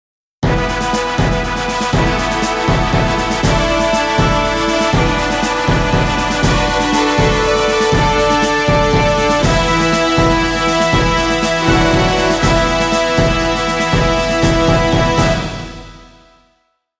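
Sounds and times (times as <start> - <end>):
victory jingle: 0.6 - 16.2.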